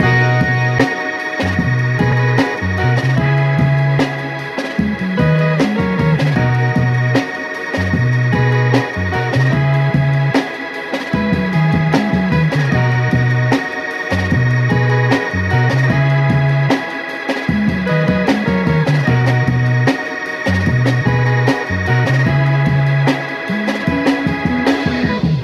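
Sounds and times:
phonk music loop: 0.0s - 25.4s.

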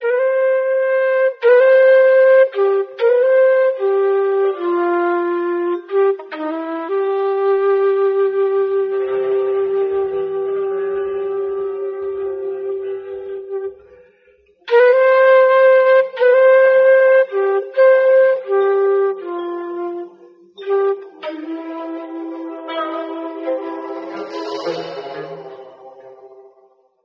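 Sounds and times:
sad flute: 0.0s - 26.9s.

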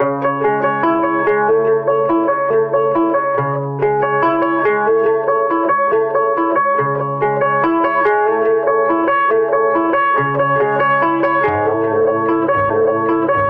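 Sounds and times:
guitar: 0.0s - 13.4s.

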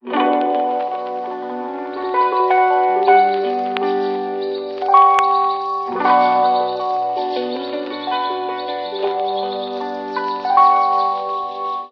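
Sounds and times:
sad keyboard loop: 0.0s - 11.9s.

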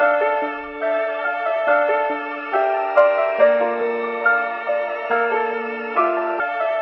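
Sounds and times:
sad piano: 0.0s - 6.8s.

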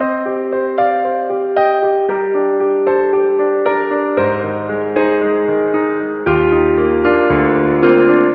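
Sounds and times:
sad piano loop: 0.0s - 8.3s.

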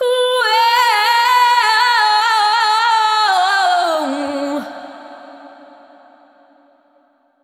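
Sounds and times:
person singing: 0.0s - 5.4s.

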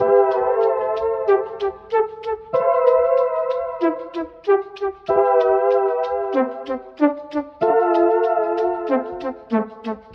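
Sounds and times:
phonk keys: 0.0s - 10.1s.

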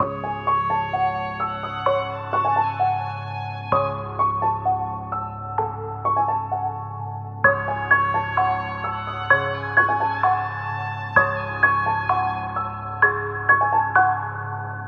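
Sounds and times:
sad piano loop: 0.0s - 14.8s.

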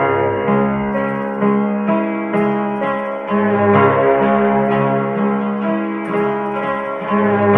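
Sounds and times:
sad piano loop: 0.0s - 7.5s.

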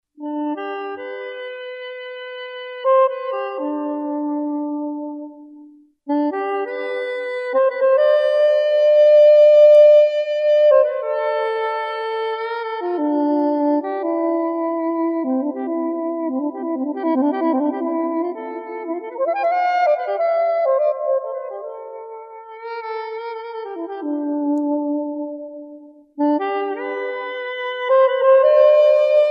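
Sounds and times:
mysterious saxophone: 0.2s - 29.2s.

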